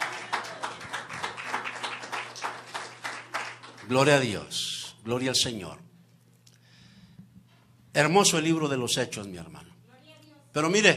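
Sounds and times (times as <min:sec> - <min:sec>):
audience applause: 0:00.0 - 0:04.2
speech: 0:03.9 - 0:05.9, 0:08.0 - 0:09.7, 0:10.6 - 0:10.9.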